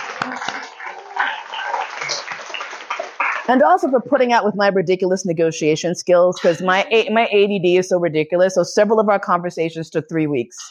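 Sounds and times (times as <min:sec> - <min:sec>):
audience applause: 0:00.0 - 0:03.5
speech: 0:03.5 - 0:10.6.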